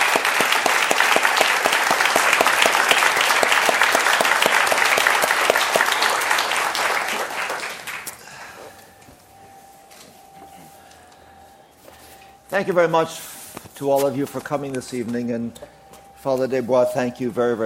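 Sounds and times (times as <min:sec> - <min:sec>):
audience applause: 0:00.0 - 0:08.7
speech: 0:12.6 - 0:17.6.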